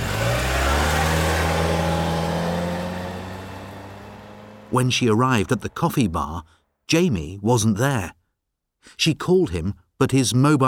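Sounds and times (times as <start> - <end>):
car engine revving as it drives off: 0.0 - 6.0
speech: 4.7 - 8.2, 8.8 - 10.6.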